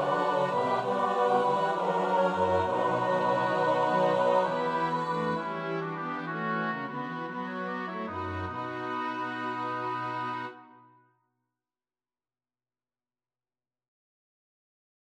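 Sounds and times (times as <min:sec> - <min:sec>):
soprano alto tenor bass voices: 0:00.0 - 0:10.6.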